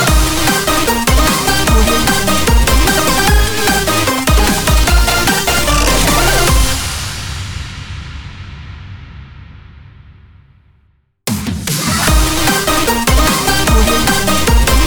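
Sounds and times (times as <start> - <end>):
8bit dubstep win logo jingle: 0.0 - 7.7, 11.3 - 14.8.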